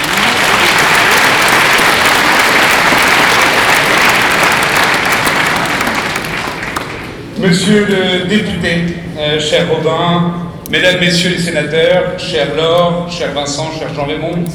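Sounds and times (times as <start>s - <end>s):
crowd applause: 0.0s - 7.2s
speech: 7.4s - 14.5s.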